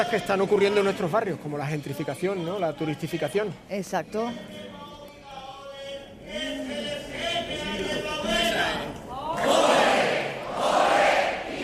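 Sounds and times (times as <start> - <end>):
speech: 0.0 - 4.8
carnival troupe's traditional group shout: 4.4 - 11.6.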